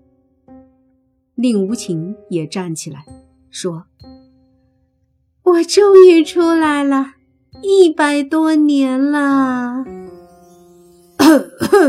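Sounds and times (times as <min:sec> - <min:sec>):
speech: 0:01.4 - 0:03.9, 0:05.5 - 0:10.0, 0:11.3 - 0:11.8
person coughing: 0:11.2 - 0:11.8.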